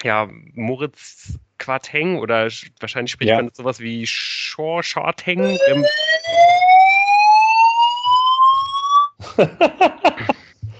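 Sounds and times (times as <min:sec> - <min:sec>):
speech: 0:00.0 - 0:06.6, 0:09.4 - 0:09.9
laughter: 0:03.1 - 0:03.5, 0:05.2 - 0:05.8, 0:09.2 - 0:10.7
fire alarm blaring: 0:05.4 - 0:09.1.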